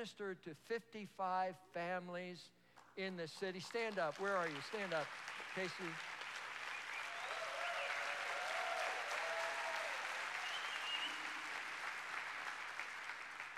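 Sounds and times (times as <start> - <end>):
speech: 0.0 - 6.1
crowd applauding: 3.7 - 13.5.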